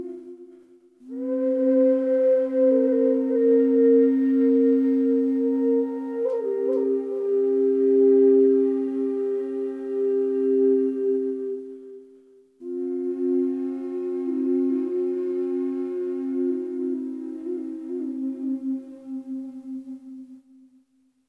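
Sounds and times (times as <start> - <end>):
maple double drone flute in C sharp with bass delay: 0.0 - 20.6.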